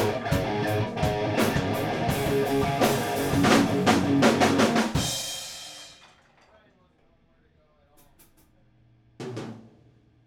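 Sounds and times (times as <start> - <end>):
guitar riff: 0.0 - 5.0
drums: 0.0 - 10.2.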